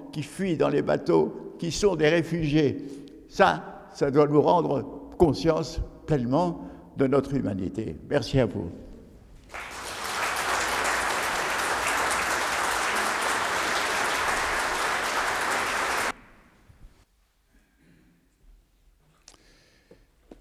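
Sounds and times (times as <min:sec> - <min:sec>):
speech: 0:00.2 - 0:08.8
audience applauding during a church service: 0:09.4 - 0:16.3.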